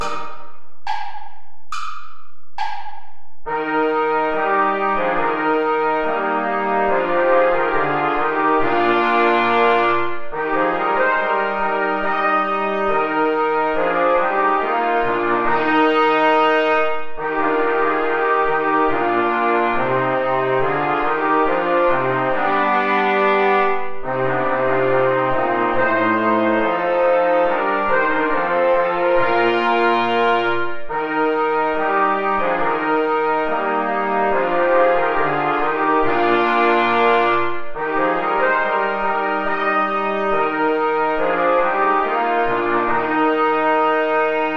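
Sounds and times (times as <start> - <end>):
play-along backing music without trombone: 0.0 - 44.5.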